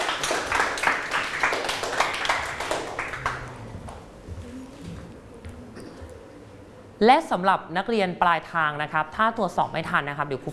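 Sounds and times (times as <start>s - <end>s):
classroom clapping: 0.0s - 4.1s
speech: 7.0s - 10.5s.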